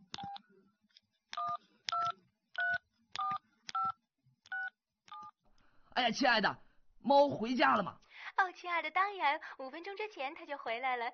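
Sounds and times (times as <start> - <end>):
mobile phone keypad dual-tone dialing beeps: 0.1 - 0.4, 1.4 - 5.3
speech: 6.0 - 11.1.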